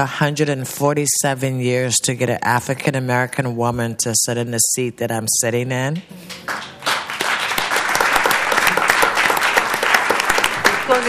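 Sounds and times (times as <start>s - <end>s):
speech: 0.0s - 6.7s
audience applause: 6.3s - 11.0s.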